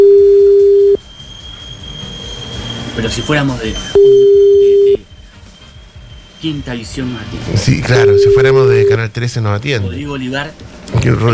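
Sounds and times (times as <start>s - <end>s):
telephone line tone while calling someone back: 0.0s - 1.0s, 4.0s - 5.0s, 7.9s - 9.0s
speech: 3.2s - 4.5s, 6.4s - 11.3s.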